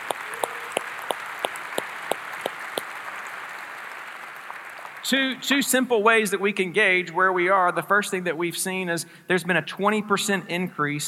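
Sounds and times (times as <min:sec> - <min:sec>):
audience applauding: 0:00.0 - 0:05.6
speech: 0:05.1 - 0:11.0.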